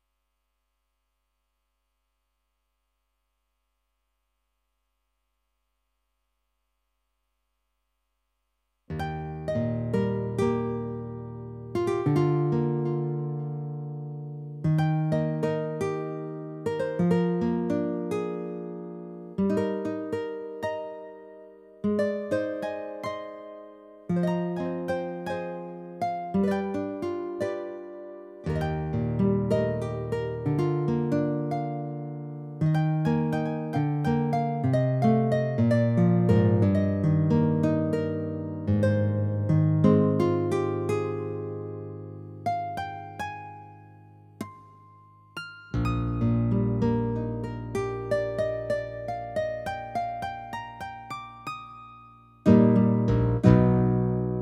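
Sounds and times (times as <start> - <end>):
guitar: 8.9 - 54.4.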